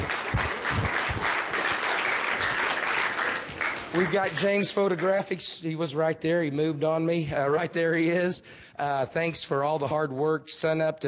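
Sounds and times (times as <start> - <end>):
crowd applauding: 0.0 - 5.3
speech: 3.9 - 11.0.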